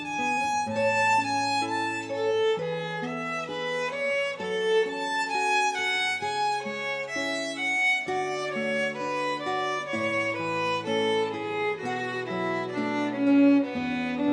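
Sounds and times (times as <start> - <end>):
classical guitar in a duet with violin: 0.0 - 14.3
violin in a duet with guitar: 0.0 - 14.3.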